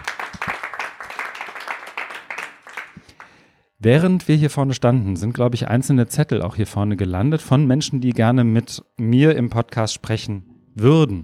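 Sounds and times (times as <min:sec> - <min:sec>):
audience applause: 0:00.0 - 0:03.2
speech: 0:03.8 - 0:11.2.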